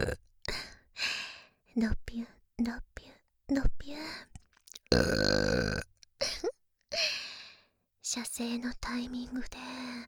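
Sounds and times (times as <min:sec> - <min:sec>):
person burping: 0:00.0 - 0:00.2, 0:04.9 - 0:05.9
speech: 0:01.8 - 0:04.3, 0:08.2 - 0:09.9.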